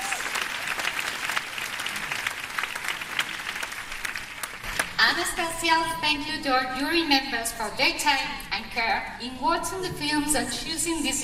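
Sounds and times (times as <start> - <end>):
festival audience applause: 0.0 - 5.0
speech: 5.1 - 11.2.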